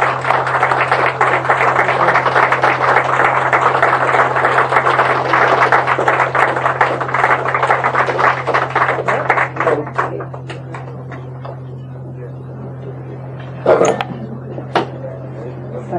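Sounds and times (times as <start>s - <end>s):
crowd applauding: 0.0s - 11.3s
low constant hum: 0.0s - 15.9s.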